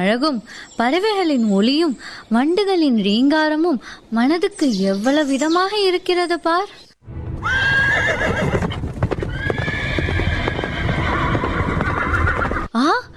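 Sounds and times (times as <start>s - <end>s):
speech: 0.0s - 6.8s, 7.4s - 8.5s, 12.8s - 13.1s
horse-drawn chariot approaching: 7.4s - 12.7s.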